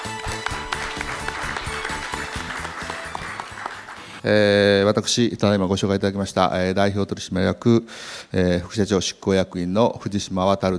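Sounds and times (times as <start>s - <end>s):
audience clapping: 0.0s - 4.2s
rhythmic low-pitched musical pattern: 0.0s - 4.2s
speech: 4.2s - 10.7s.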